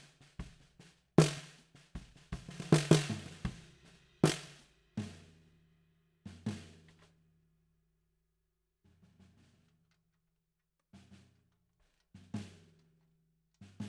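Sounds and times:
snare drum: 0.0 - 5.3.

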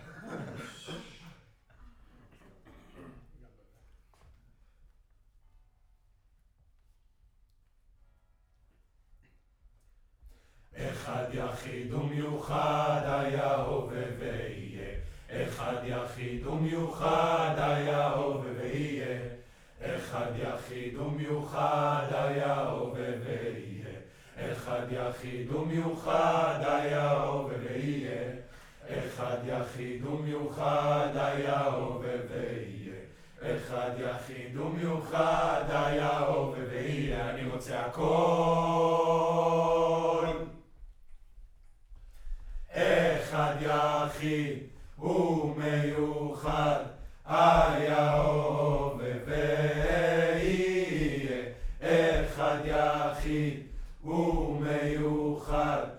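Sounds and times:
distant choir: 10.7 - 40.9, 42.6 - 55.9.

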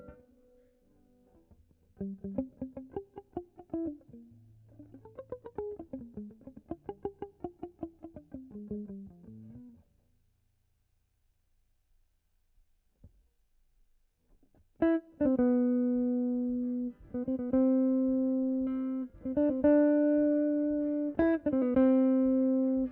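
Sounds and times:
guitar: 0.0 - 10.0, 14.4 - 22.9.

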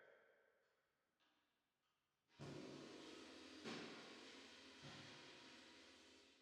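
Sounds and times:
drums with reverb: 2.4 - 6.4.

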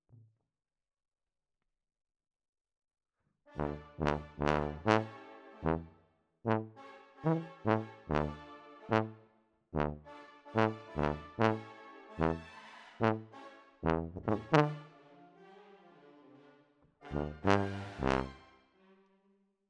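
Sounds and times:
tuba: 3.5 - 9.2, 9.8 - 15.0, 17.0 - 18.5.

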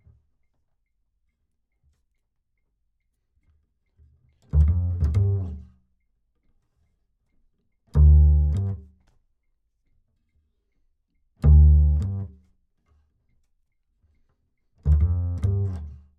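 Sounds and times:
bass: 4.4 - 5.8, 7.9 - 9.0, 11.4 - 12.4, 14.8 - 16.1.

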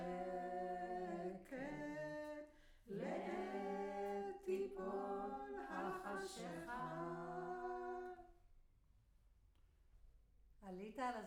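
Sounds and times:
choir singing in room: 0.0 - 2.3, 2.9 - 8.3.

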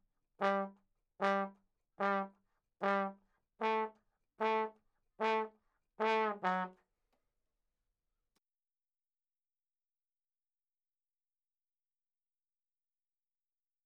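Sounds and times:
ragtime trombone: 0.4 - 6.8.

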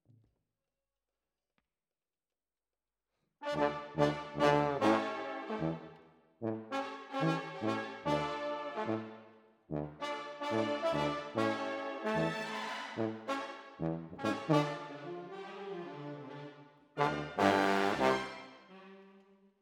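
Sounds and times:
trombone: 3.4 - 15.3, 17.0 - 18.6.

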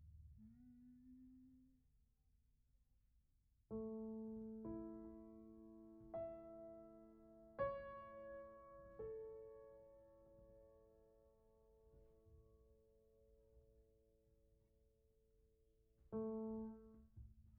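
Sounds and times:
piano: 3.7 - 17.5.

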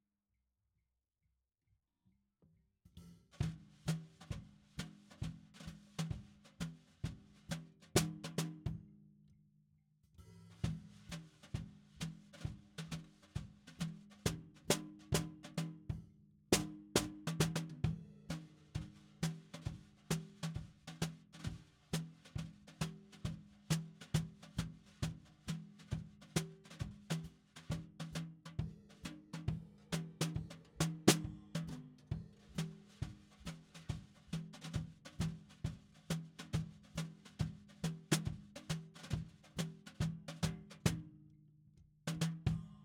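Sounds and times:
snare drum: 3.4 - 8.6, 10.6 - 15.8, 16.6 - 28.3, 29.0 - 41.0.

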